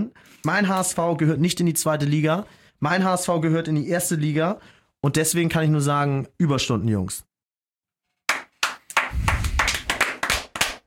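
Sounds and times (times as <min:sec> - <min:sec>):
speech: 0:00.0 - 0:07.3
restrained applause: 0:08.3 - 0:10.8.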